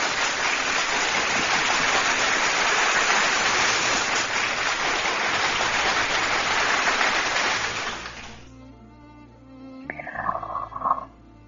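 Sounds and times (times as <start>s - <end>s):
audience applause: 0.0s - 8.5s.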